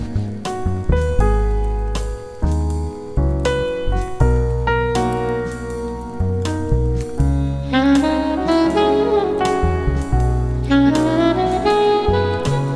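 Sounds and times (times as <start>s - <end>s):
jazz soundscape: 0.0s - 12.7s.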